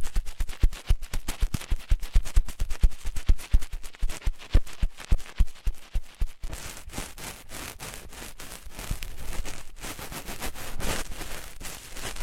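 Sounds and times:
dense scratching rustle: 0.0s - 12.2s
ear cleaning crackles and clicks: 0.0s - 12.2s.

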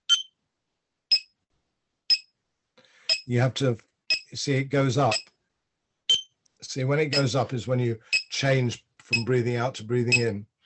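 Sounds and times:
clicker ticker breathing-pace device ticking: 3.1s - 3.3s, 4.1s - 4.3s, 5.1s - 5.3s, 7.1s - 7.4s, 8.1s - 8.4s, 9.1s - 9.3s
speech: 3.3s - 5.3s, 6.6s - 10.5s.

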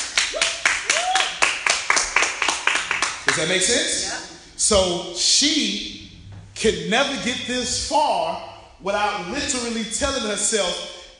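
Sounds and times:
audience clapping in a steady quick rhythm: 0.0s - 3.8s
person whooping: 0.3s - 1.4s
speech: 3.4s - 6.0s, 6.6s - 11.0s.

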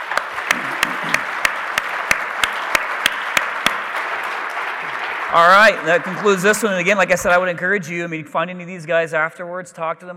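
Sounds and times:
audience applause: 0.0s - 7.6s
speech: 5.3s - 10.1s.

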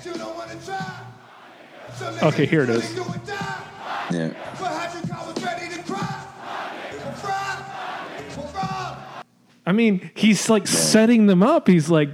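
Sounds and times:
speech: 0.0s - 1.2s, 1.8s - 5.5s, 9.7s - 12.1s
concert crowd yelling and cheering: 0.7s - 9.2s.

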